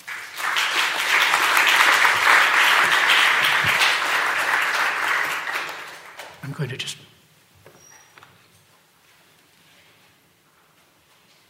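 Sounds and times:
audience applause welcoming an author to the stage: 0.0 - 6.9
speech: 6.6 - 7.1.

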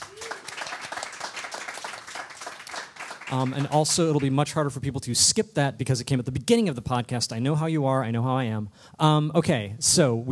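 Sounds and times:
audience round of applause: 0.0 - 4.4
speech: 3.3 - 10.3.

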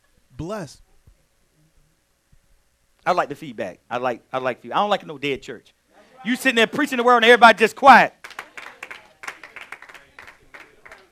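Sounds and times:
speech: 0.4 - 0.9, 3.1 - 8.2
audience clapping: 7.4 - 11.1.

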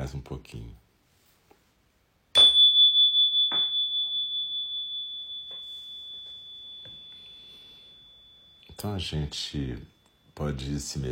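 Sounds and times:
speech: 0.1 - 0.8, 8.8 - 11.0
meditation bell ringing: 2.3 - 11.0.

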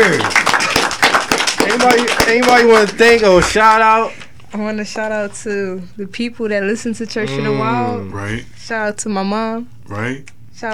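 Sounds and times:
speech: 0.0 - 0.4, 1.8 - 10.7
people clapping: 0.0 - 3.9.

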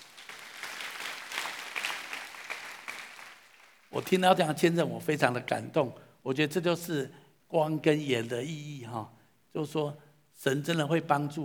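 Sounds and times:
audience applause: 0.0 - 3.9
speech: 3.9 - 11.4.

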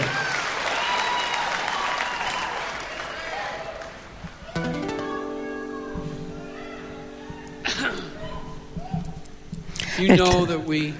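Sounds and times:
concert audience applause: 0.0 - 5.1
sustained musical notes: 4.6 - 10.9
speech: 10.0 - 10.9.

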